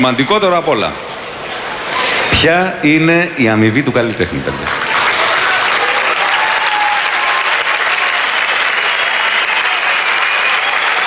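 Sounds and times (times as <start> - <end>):
speech: 0.0 - 1.1, 2.4 - 4.9
audience applause: 4.6 - 11.0.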